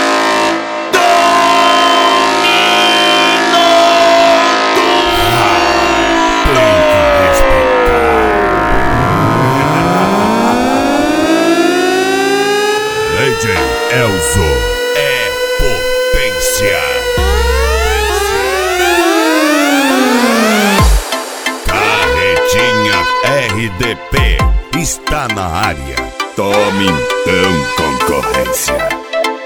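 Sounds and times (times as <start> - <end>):
brassy horn blaring: 0.0 - 24.2, 25.6 - 29.3.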